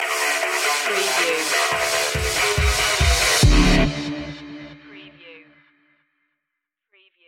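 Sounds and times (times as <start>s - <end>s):
stinger sound effect: 0.0s - 5.2s.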